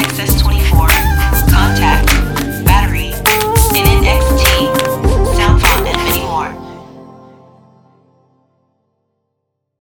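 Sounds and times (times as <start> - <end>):
chopped ethnic music: 0.0 - 8.3.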